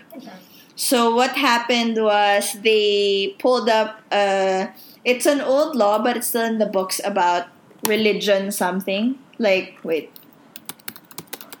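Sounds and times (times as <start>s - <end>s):
speech: 0.1s - 10.2s
rapid typing on a computer keyboard searching on Google: 10.1s - 11.5s.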